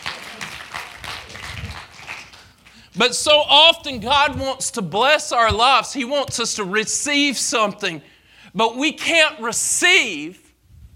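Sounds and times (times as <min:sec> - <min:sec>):
audience hand clapping: 0:00.0 - 0:02.9
speech: 0:03.0 - 0:10.4.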